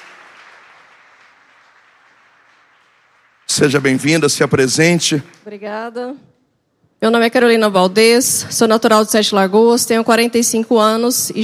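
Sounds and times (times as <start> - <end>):
crowd applauding: 0.0 - 5.7
speech: 3.5 - 6.4, 7.0 - 11.4.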